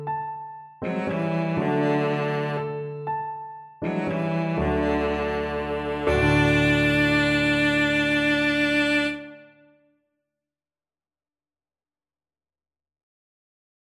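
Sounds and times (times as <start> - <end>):
violoncello: 0.8 - 9.5.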